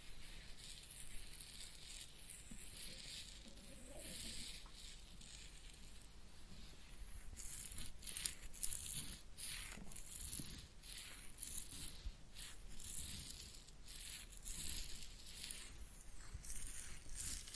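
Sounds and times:
head massage and ear cleaning scratching and rubbing on hair and ear: 0:00.0 - 0:17.5.

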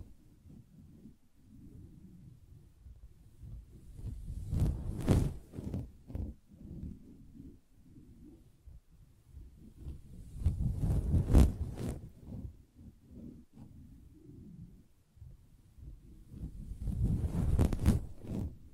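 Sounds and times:
tapping and scratching on a fabric surface: 0:00.0 - 0:18.7.

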